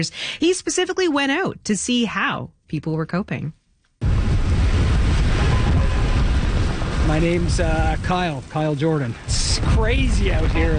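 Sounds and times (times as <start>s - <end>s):
speech: 0.0s - 3.6s, 7.1s - 10.7s
blistering high winds: 4.0s - 10.7s
heavy rain: 4.0s - 10.7s.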